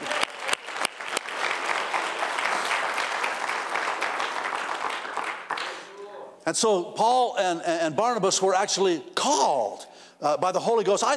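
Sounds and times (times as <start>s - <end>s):
audience applause: 0.0s - 5.8s
speech: 6.5s - 11.1s.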